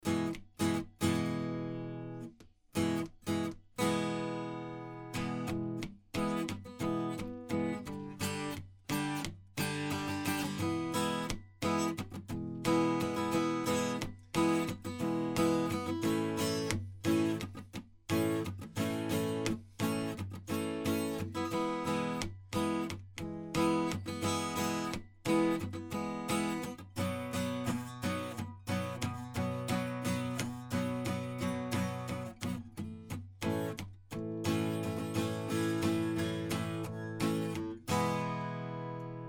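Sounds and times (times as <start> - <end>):
acoustic guitar: 0.0 - 39.2.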